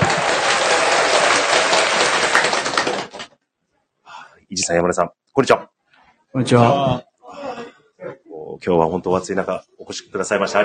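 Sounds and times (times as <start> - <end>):
audience applause welcoming guests: 0.0 - 3.3
speech: 4.7 - 7.5, 8.6 - 10.6.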